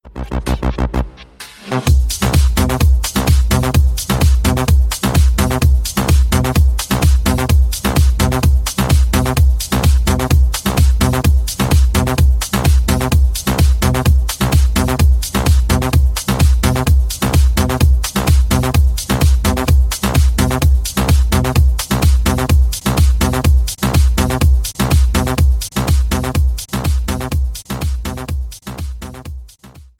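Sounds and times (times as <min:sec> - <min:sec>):
tech house ringtone: 0:00.0 - 0:29.4.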